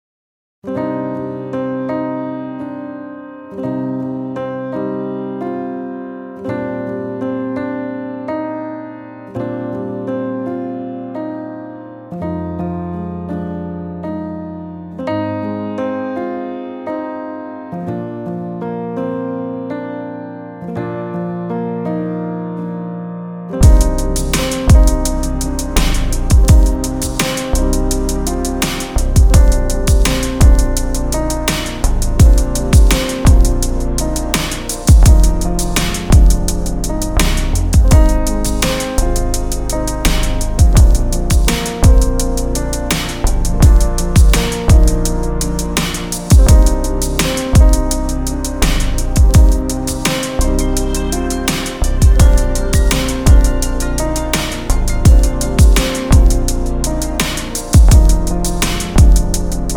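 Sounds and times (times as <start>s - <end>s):
hip hop music: 23.6s - 59.7s.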